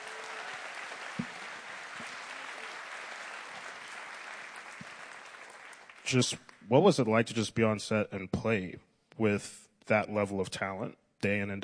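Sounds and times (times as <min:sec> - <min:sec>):
audience applause: 0:00.0 - 0:06.4
speech: 0:06.1 - 0:11.6.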